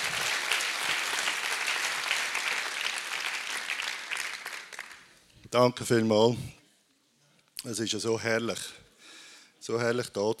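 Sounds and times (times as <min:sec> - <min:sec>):
audience applause: 0:00.0 - 0:05.1
speech: 0:05.5 - 0:06.6, 0:07.6 - 0:08.8, 0:09.6 - 0:10.3.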